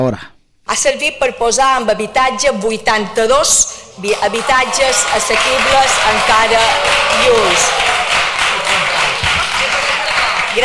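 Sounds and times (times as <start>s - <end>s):
speech: 0.1s - 8.1s
group applauding in parliament: 4.0s - 10.6s.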